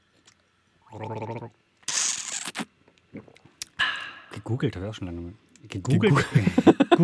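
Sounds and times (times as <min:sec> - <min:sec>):
person gargling with water: 0:00.9 - 0:03.4
speech: 0:01.0 - 0:01.6, 0:04.5 - 0:07.0
laughter: 0:06.1 - 0:07.0.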